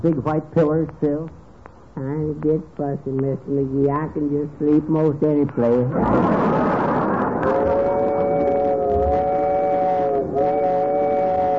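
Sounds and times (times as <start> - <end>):
speech: 0.0 - 1.4, 2.0 - 6.8
slow train rumbling along the tracks: 6.1 - 11.5.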